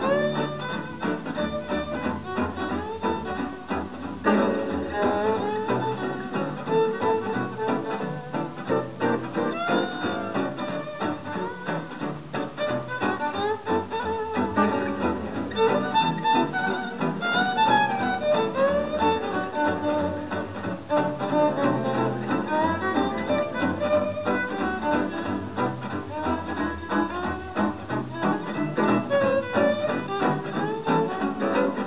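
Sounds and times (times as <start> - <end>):
music: 0.0 - 31.8.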